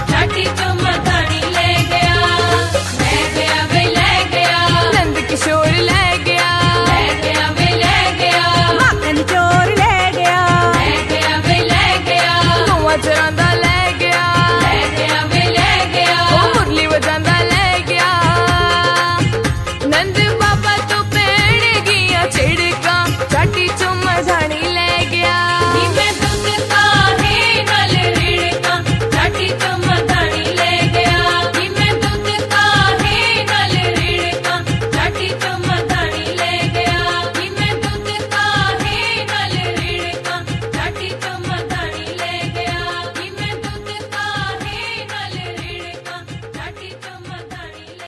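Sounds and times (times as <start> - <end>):
Krishna bhajan ringtone: 0.0 - 46.1.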